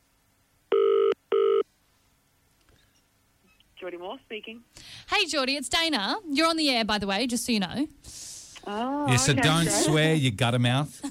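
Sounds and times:
ringback tones on a phone line: 0.7 - 1.6
speech: 3.9 - 11.0.

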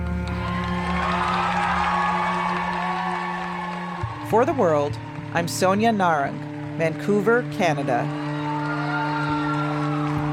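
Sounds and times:
packed theater crowd cheering and roaring: 0.0 - 10.3
speech: 4.3 - 8.2.

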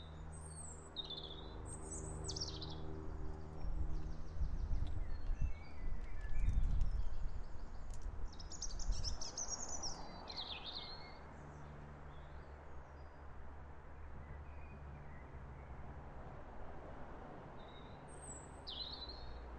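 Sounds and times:
birdsong on a sunny afternoon: 0.0 - 13.2, 17.6 - 19.5.

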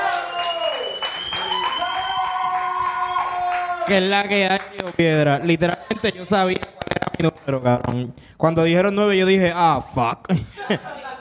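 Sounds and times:
audience clapping: 0.0 - 8.0
speech: 3.9 - 11.0
laughter: 10.3 - 11.1.

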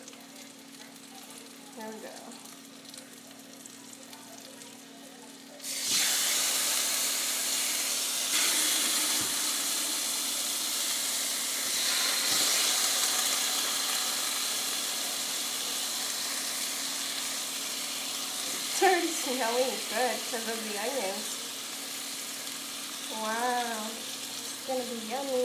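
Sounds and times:
chicken sizzling in a hot sauté pan: 0.0 - 25.4
speech: 1.8 - 2.6, 19.3 - 21.4, 23.2 - 24.0, 24.7 - 25.4.

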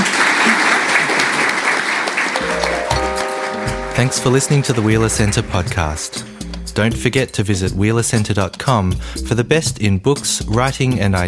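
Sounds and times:
audience applauding panellists: 0.0 - 6.3
sustained musical tones: 2.4 - 7.1
speech: 4.0 - 11.2.

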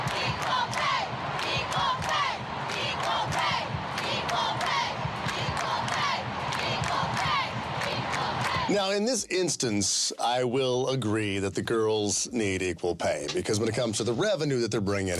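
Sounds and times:
sharp claps or beats: 0.0 - 8.7
large stadium crowd chanting in unison: 0.0 - 9.0
speech: 8.7 - 15.1.

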